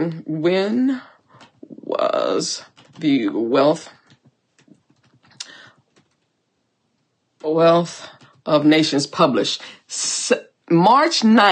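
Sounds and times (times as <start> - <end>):
speech: 0.0 - 1.1, 2.0 - 4.0, 7.4 - 11.5
typing on a computer keyboard: 2.6 - 3.3, 3.9 - 6.3, 8.1 - 8.5.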